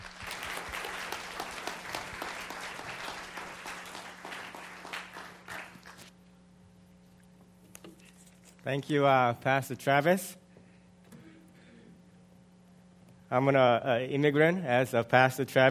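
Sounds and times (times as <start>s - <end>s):
applause: 0.0s - 6.1s
speech: 8.7s - 10.4s, 13.3s - 15.6s.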